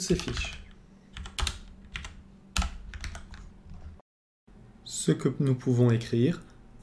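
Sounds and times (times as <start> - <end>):
typing code on a computer keyboard: 0.0 - 3.8
speech: 0.1 - 0.6, 5.0 - 6.5.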